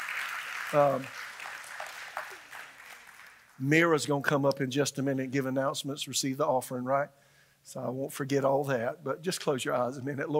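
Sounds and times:
audience clapping: 0.0s - 3.9s
speech: 0.7s - 1.2s, 3.6s - 10.3s.

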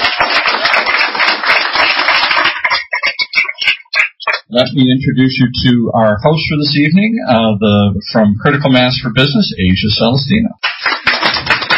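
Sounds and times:
audience applause: 0.0s - 4.5s, 10.6s - 11.7s
speech: 4.5s - 10.7s.

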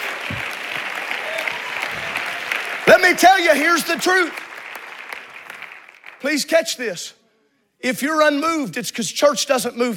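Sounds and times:
audience clapping hands: 0.0s - 6.8s
speech: 2.9s - 4.5s, 6.2s - 7.2s, 7.8s - 9.9s.

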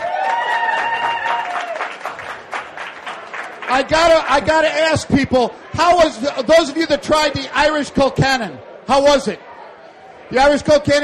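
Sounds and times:
cheering whoops: 0.0s - 2.2s
audience applause for a chef at a food and whiskey event: 0.0s - 4.6s
speech: 3.7s - 9.5s, 10.3s - 11.0s.

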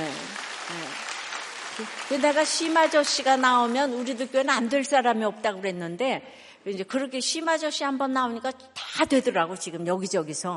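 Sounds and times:
audience applause: 0.0s - 4.1s
speech: 1.8s - 10.5s.

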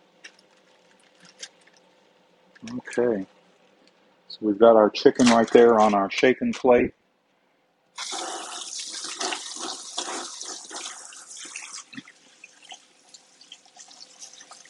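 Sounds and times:
speech: 2.6s - 3.4s, 4.4s - 7.0s
hands being washed: 8.0s - 14.6s.

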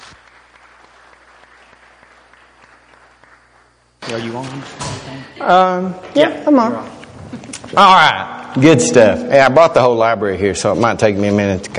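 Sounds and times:
faint audience applause welcoming a presenter: 0.0s - 3.9s
low constant hum: 0.0s - 11.7s
speech: 4.1s - 11.7s.

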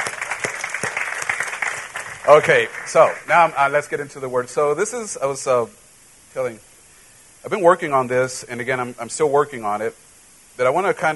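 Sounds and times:
crowd hand clapping applause: 0.0s - 3.3s
speech: 2.3s - 6.7s, 7.4s - 10.0s, 10.6s - 11.1s.

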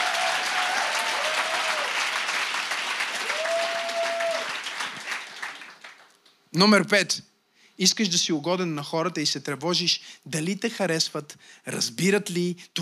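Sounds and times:
audience applause: 0.0s - 6.1s
speech: 6.6s - 12.7s.

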